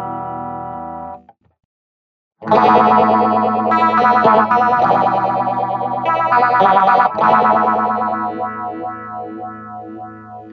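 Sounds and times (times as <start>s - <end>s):
crazy phaser pedal effect sound: 2.5s - 10.3s.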